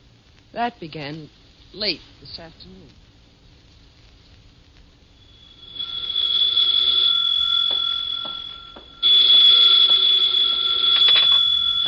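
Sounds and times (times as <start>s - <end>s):
speech: 0.6s - 3.0s
telephone ringing: 5.2s - 11.8s.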